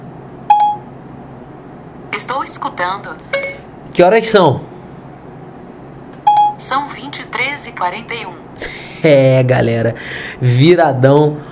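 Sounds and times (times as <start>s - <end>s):
Siri voice assistant activation chime on a phone: 0.5s - 0.9s, 3.3s - 3.6s, 6.3s - 6.6s
speech: 2.2s - 4.7s, 6.6s - 11.4s.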